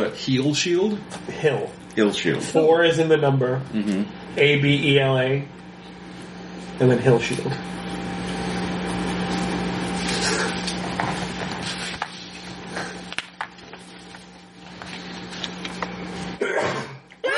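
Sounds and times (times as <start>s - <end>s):
steady low electrical hum: 0.0s - 17.3s
speech: 0.1s - 5.6s, 6.8s - 7.8s
person sneezing: 16.4s - 17.3s.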